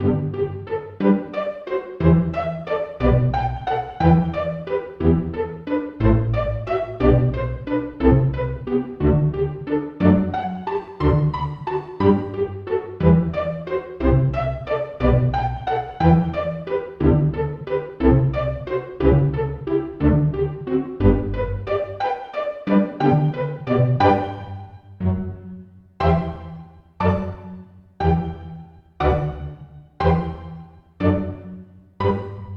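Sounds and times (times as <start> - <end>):
pizzicato section: 0.0 - 32.5.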